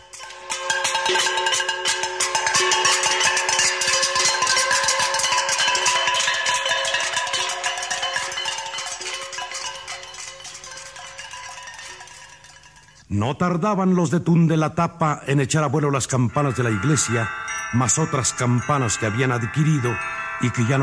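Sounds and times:
clanging metal pots and pans: 0.0s - 13.0s
speech: 1.1s - 1.7s, 13.1s - 20.8s.

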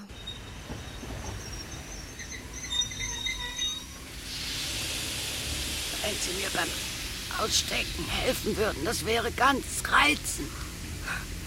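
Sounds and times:
thin high train wheel squeals: 0.0s - 6.2s
train arriving rumbling on rails: 0.0s - 11.4s
broad hiss of train air: 1.6s - 9.5s
speech: 6.1s - 10.6s.

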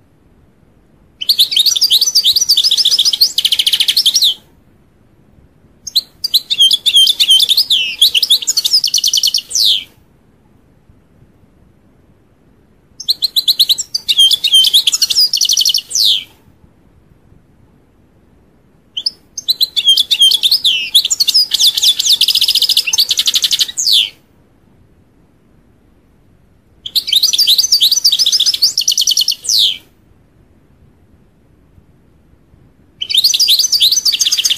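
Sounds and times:
European goldfinch song: 1.2s - 4.4s, 5.8s - 9.9s, 13.0s - 16.3s, 19.0s - 24.1s, 26.8s - 29.8s, 33.0s - 34.5s.

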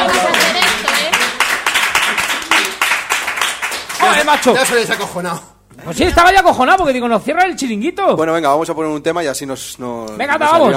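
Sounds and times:
audience clapping celebrating a 200th program: 0.0s - 5.2s
speech: 4.3s - 10.7s.

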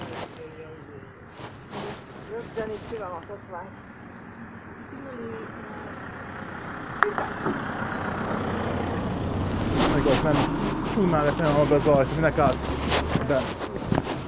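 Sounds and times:
speech: 2.5s - 3.9s, 5.1s - 5.7s, 7.1s - 7.8s, 9.9s - 14.0s
car driving past: 3.9s - 13.6s.

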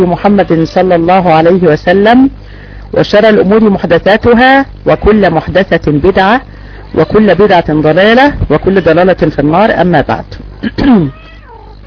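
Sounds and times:
speech: 0.0s - 11.2s
domestic cat meowing: 11.1s - 11.8s.

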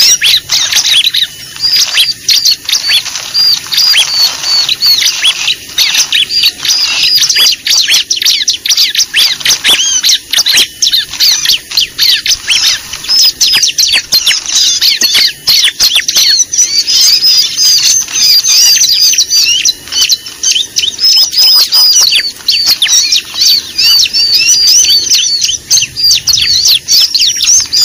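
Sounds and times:
lovebirds chattering: 0.0s - 27.8s.

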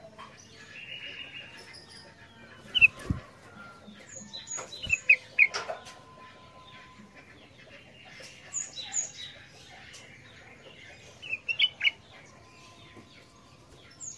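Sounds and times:
ruby-throated bulbul song: 0.0s - 14.1s.

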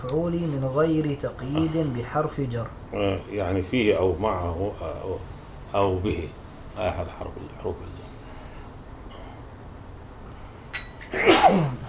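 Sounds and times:
speech: 0.0s - 7.9s, 11.2s - 11.8s
person sneezing during an Arabic grammar lesson: 11.1s - 11.8s.

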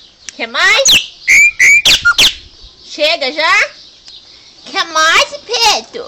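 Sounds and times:
chopi blackbird song: 0.0s - 2.6s
speech: 0.4s - 1.1s, 3.0s - 3.8s, 4.6s - 6.0s.

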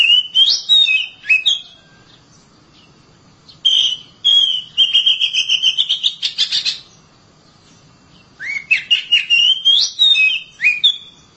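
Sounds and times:
Oriental magpie-robin singing whistled phrases: 0.0s - 2.2s, 3.5s - 7.0s, 8.2s - 11.3s.

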